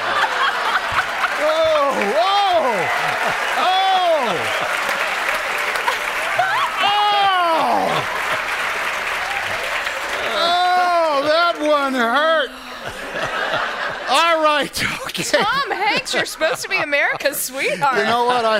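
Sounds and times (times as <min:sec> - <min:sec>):
laughter: 0:00.0 - 0:09.0, 0:10.1 - 0:18.5
crowd whooping and cheering: 0:00.0 - 0:14.1
audience applause: 0:00.0 - 0:18.5
speech: 0:14.2 - 0:18.5.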